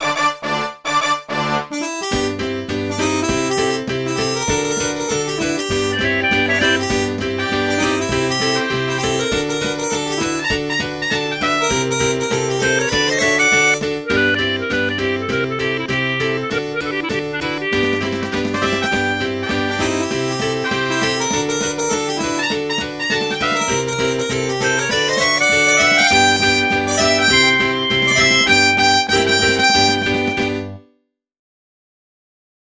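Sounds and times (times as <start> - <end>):
MIDI bonus music: 0.0 - 30.8.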